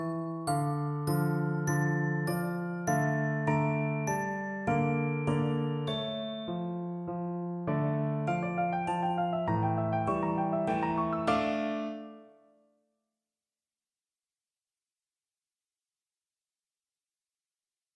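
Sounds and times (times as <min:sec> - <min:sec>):
piano: 0:00.0 - 0:12.7.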